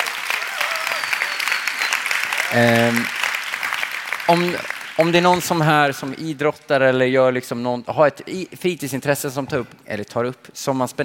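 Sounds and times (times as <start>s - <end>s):
audience applause: 0.0s - 6.2s
speech: 2.5s - 3.2s, 4.3s - 11.0s.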